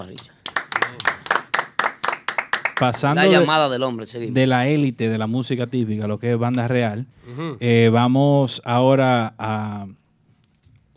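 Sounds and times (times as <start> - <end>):
applause: 0.0 - 3.2
speech: 2.8 - 10.0.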